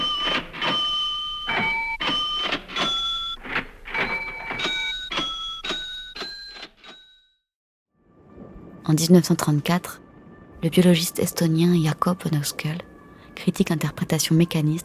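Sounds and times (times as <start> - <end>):
melody played on a cash register: 0.0 - 7.5
speech: 8.9 - 10.0, 10.6 - 14.8.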